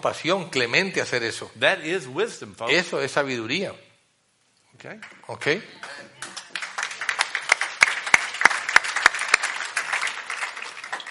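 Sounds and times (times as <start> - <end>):
speech: 0.0 - 3.9, 4.8 - 6.3
light scattered applause from a small group: 5.8 - 11.0.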